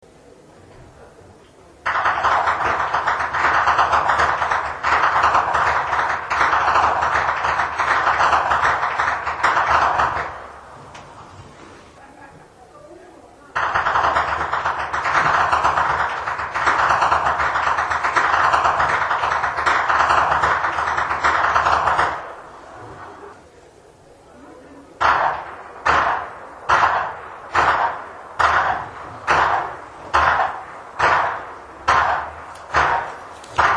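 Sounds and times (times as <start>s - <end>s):
whip cracking in Flachgau: 1.9s - 10.3s, 13.6s - 22.3s, 25.0s - 33.7s
laughter: 11.8s - 12.8s, 22.8s - 23.7s.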